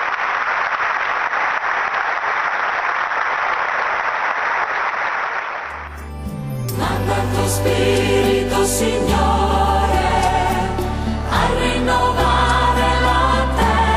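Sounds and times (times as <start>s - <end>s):
audience applause: 0.0s - 6.0s
organ or keyboard music and singing: 5.7s - 13.9s
speech: 8.6s - 9.3s.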